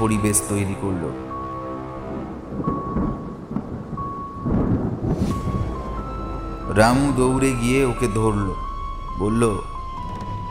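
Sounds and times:
speech: 0.0 - 1.3, 6.8 - 9.7
thunder in a storm as audio drama sound effect: 2.2 - 10.4
thunder crack: 2.4 - 8.2.

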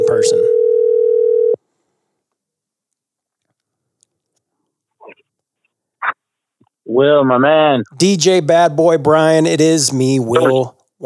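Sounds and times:
outgoing phone call ringing tone: 0.1 - 1.6
speech: 0.2 - 0.5, 6.9 - 11.0.

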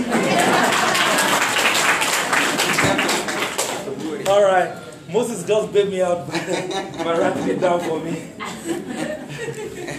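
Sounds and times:
laughter: 0.0 - 1.5, 6.2 - 9.9
crowd clapping: 0.0 - 4.4
speech: 4.6 - 9.1.

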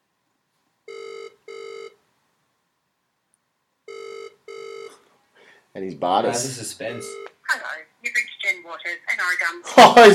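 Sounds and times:
ringback tone of an outgoing phone call: 0.9 - 2.0, 3.9 - 5.0, 7.0 - 7.3
speech: 5.8 - 7.6, 9.2 - 10.1.

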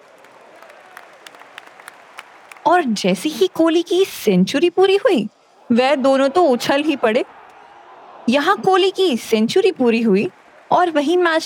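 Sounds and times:
hands clapping loudly: 0.0 - 2.8, 10.2 - 11.2
speech: 2.7 - 7.4, 8.2 - 11.4.

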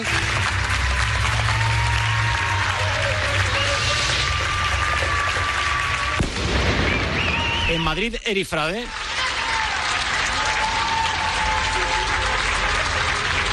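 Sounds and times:
nationwide applause from people in Spain: 0.0 - 13.5
faint whistle-like tones: 6.8 - 8.0
speech: 7.9 - 9.1.

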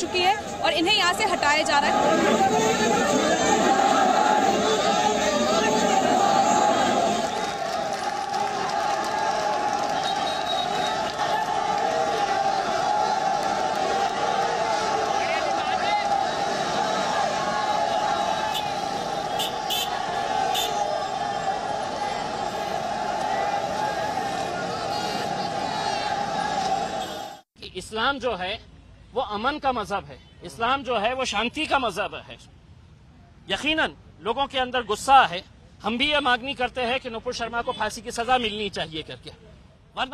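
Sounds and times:
speech: 0.0 - 3.4, 28.1 - 32.6, 33.5 - 40.1
crowd murmuring outside mosque gate: 0.0 - 27.0
shouts: 0.0 - 27.4
traffic rumbling: 0.0 - 27.4.

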